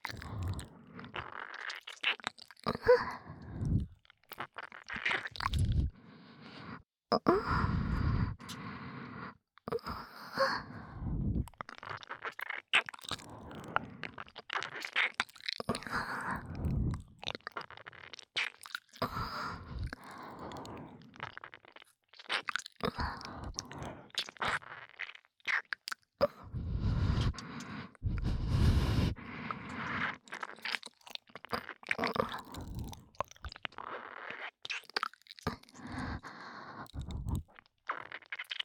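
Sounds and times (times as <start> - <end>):
relaxed breathing: 0.1 - 1.2, 2.8 - 3.9, 5.5 - 11.5, 13.1 - 14.2, 15.8 - 17.0, 19.0 - 21.3, 22.8 - 24.2, 26.2 - 30.2, 35.5 - 37.4
ear licking sounds: 3.5 - 5.9, 11.0 - 38.6.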